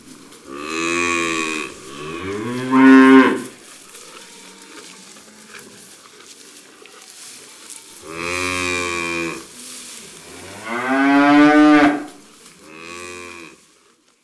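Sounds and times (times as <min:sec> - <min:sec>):
cow mooing: 0:00.0 - 0:03.6, 0:08.0 - 0:09.5, 0:10.2 - 0:13.6.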